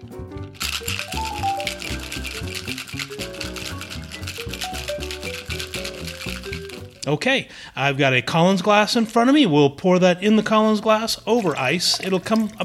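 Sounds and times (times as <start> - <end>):
cocktail shaker being shaken vigorously: 0.4 - 7.0
speech: 7.1 - 12.6.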